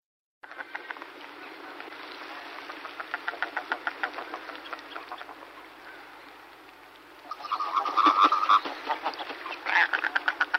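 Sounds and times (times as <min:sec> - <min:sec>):
common merganser Mergus merganser croaking: 0:02.8 - 0:05.6, 0:07.3 - 0:10.5.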